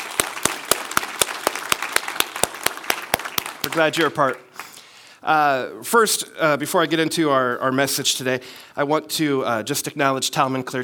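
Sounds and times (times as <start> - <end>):
church congregation clapping in welcome: 0.0 - 4.8
speech: 3.7 - 4.5, 5.2 - 10.8.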